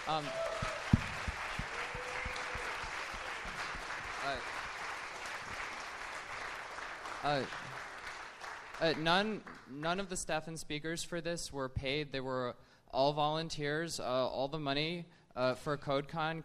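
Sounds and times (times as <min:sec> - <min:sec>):
audience applause: 0:00.0 - 0:09.7
speech: 0:00.1 - 0:00.6, 0:04.2 - 0:04.6, 0:07.2 - 0:07.8, 0:08.8 - 0:16.4.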